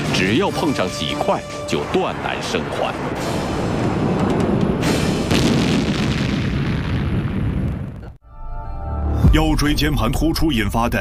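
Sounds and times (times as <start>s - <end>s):
speech: 0.2s - 3.9s, 9.4s - 11.0s
missile warhead exploding: 4.8s - 8.1s.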